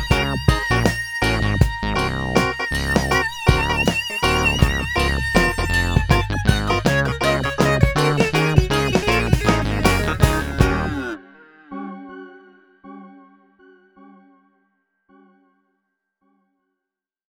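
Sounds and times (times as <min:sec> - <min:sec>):
funk music: 0:00.0 - 0:11.2.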